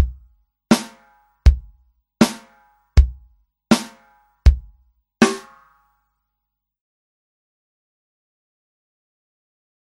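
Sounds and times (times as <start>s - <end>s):
rhythm beat at tempo 80: 0.0s - 5.7s.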